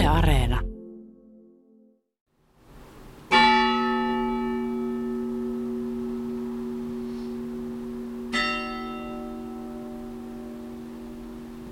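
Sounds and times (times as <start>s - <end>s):
speech: 0.1s - 0.7s
Espoo church bells tolling: 3.3s - 11.6s.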